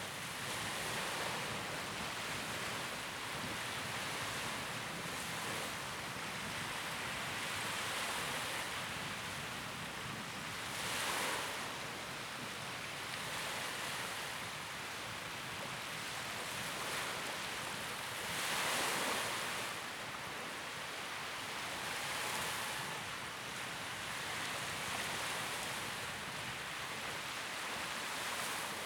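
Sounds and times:
wind: 0.0 - 28.8
soft beach waves: 16.7 - 28.8.

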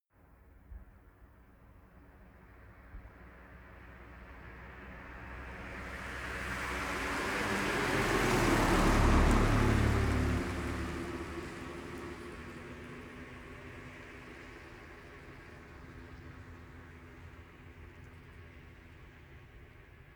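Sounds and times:
Citroen C1 car driving by: 5.9 - 14.5.

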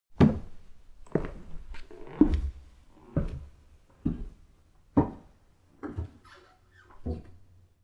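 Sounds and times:
footsteps of a walker on stairs: 0.2 - 4.4.

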